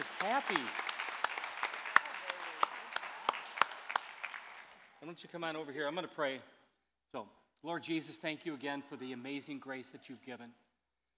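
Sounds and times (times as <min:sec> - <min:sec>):
audience applause: 0:00.0 - 0:05.0
speech: 0:00.2 - 0:00.9, 0:05.1 - 0:10.6.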